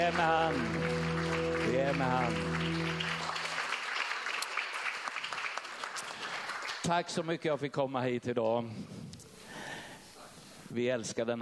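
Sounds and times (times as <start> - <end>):
speech: 0.0 - 1.0, 1.8 - 2.8, 6.9 - 9.2, 10.7 - 11.3
audience applause: 0.0 - 6.9.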